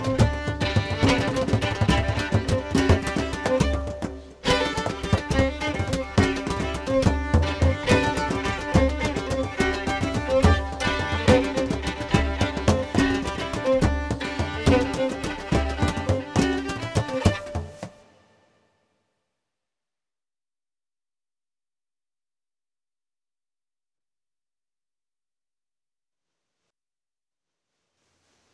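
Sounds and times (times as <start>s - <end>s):
drum: 0.0s - 18.0s
fiddle: 0.0s - 18.0s.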